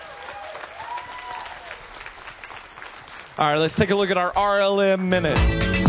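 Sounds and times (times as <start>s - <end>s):
audience applause: 0.0s - 3.9s
speech: 3.4s - 5.7s.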